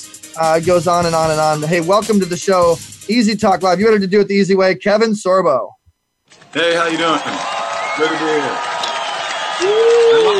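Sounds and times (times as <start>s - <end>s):
speech: 0.4s - 5.8s, 6.5s - 8.7s
audience applause: 6.4s - 10.3s.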